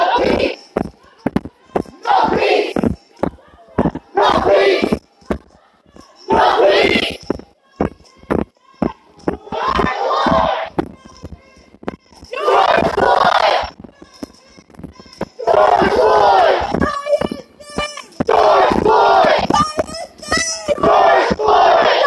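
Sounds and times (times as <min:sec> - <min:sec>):
Niagara Square protest in Downtown Buffalo: 0:00.0 - 0:22.0.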